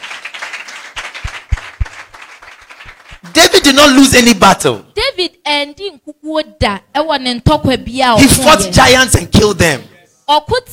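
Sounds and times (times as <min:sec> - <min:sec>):
crowd of people clapping: 0:00.0 - 0:03.8
speech: 0:03.3 - 0:10.7.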